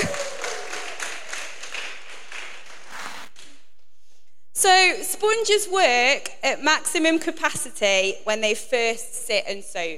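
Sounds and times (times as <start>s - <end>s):
audience applause from a room full of people: 0.0s - 3.4s
speech: 4.6s - 9.9s.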